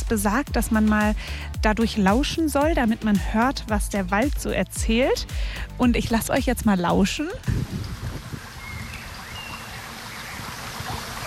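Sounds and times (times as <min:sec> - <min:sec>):
speech: 0:00.1 - 0:08.0
rushing of a forest stream: 0:07.4 - 0:11.2.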